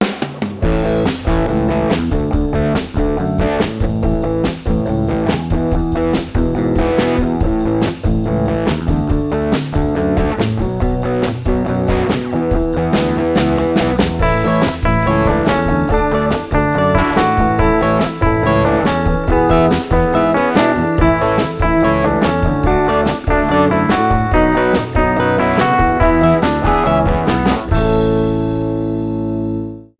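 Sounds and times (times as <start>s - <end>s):
cool rocking guitars: 0.0s - 29.8s.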